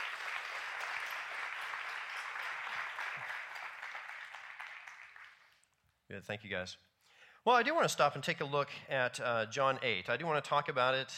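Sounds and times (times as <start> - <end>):
audience applause: 0.0 - 5.7
speech: 6.1 - 11.1.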